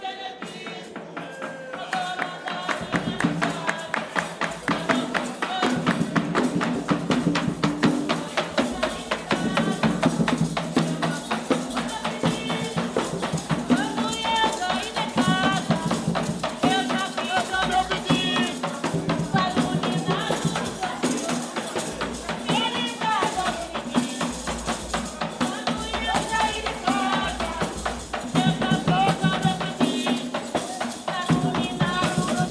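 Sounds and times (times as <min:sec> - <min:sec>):
batuque de umbigada drumming: 0:00.1 - 0:32.4.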